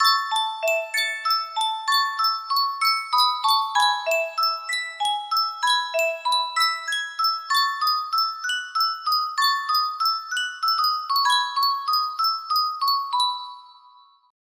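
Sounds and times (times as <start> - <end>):
Yunsheng music box melody: 0.0 - 14.3.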